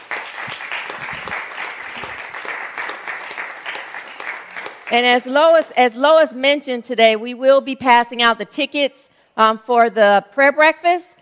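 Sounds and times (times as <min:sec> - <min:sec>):
applause for a speaker at a church gathering: 0:00.0 - 0:05.7
speech: 0:04.9 - 0:11.1.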